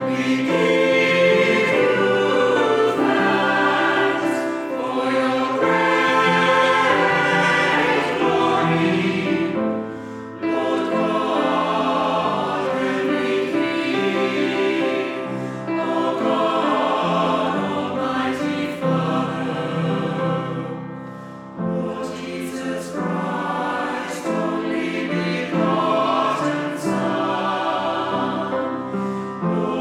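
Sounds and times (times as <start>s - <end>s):
choir singing live: 0.0s - 29.7s.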